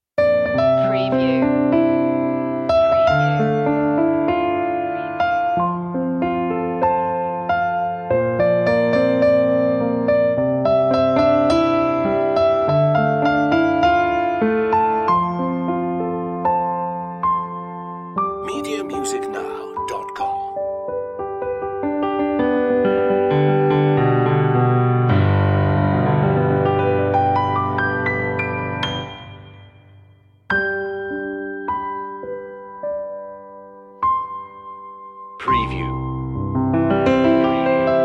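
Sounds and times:
piano: 0:00.2 - 0:38.0.

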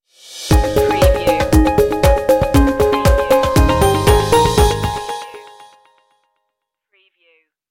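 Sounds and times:
inspirational music stinger: 0:00.4 - 0:05.8.

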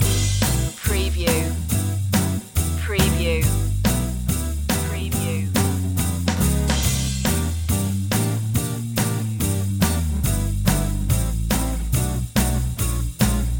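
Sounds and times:
swing music loop: 0:00.0 - 0:13.5.

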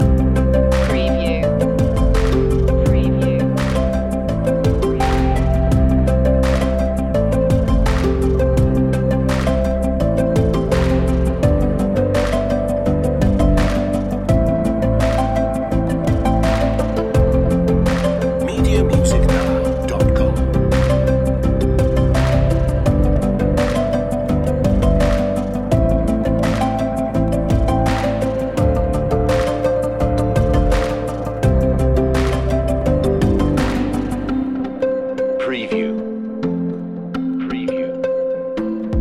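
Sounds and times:
flickering loop: 0:00.0 - 0:39.0.

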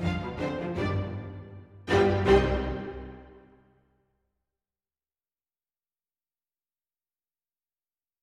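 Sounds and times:
spooky adventure strings: 0:00.0 - 0:03.7.

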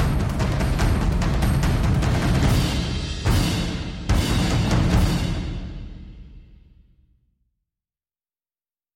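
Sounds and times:
percussion mix: 0:00.0 - 0:06.8.

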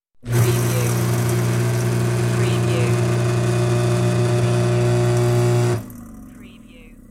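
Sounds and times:
empty garbage disposal running: 0:00.2 - 0:06.2.

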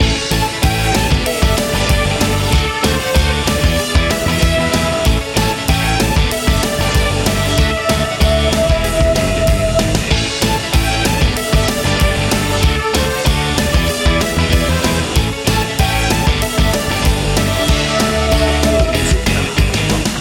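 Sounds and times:
energetic indie rock loop: 0:00.0 - 0:20.1.

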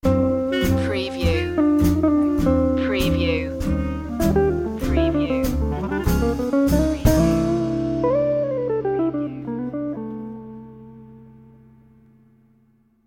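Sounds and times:
music sting: 0:00.1 - 0:10.1.

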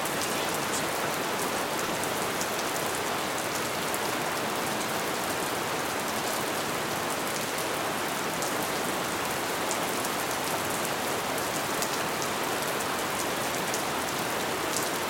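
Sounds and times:
rainstorm: 0:00.0 - 0:15.0.

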